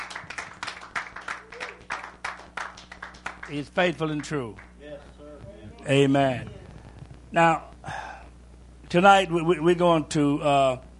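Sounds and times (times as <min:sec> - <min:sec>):
group clapping hands in praise: 0:00.0 - 0:04.8
faint low hum: 0:00.0 - 0:10.9
speech: 0:03.5 - 0:04.7, 0:05.8 - 0:06.6, 0:07.3 - 0:07.7, 0:08.9 - 0:10.9.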